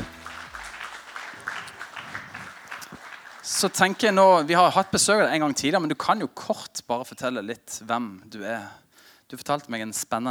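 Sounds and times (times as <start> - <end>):
low tonal hum: 0.0 - 0.8
crowd applause: 0.0 - 4.2
speech: 3.5 - 10.2.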